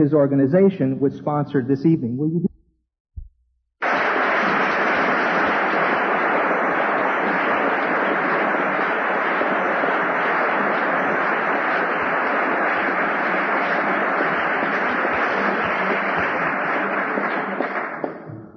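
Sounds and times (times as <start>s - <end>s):
speech: 0.0s - 2.5s
audience applause: 3.8s - 18.4s.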